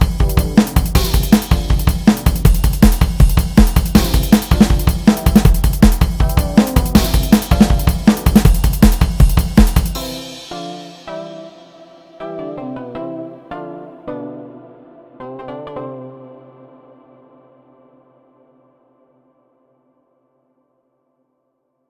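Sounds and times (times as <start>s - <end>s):
instrumental music: 0.0s - 16.9s.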